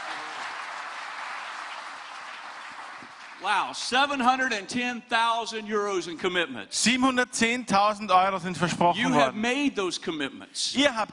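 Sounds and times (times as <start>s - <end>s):
audience applause: 0.0s - 3.8s
speech: 3.4s - 11.1s.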